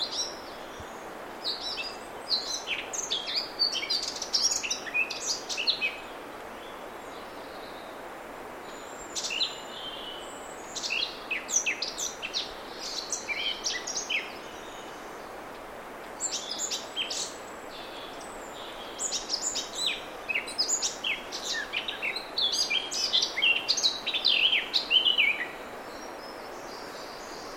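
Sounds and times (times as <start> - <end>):
Eurasian blackcap Sylvia atricapilla song: 0.0 - 6.1, 8.7 - 27.5.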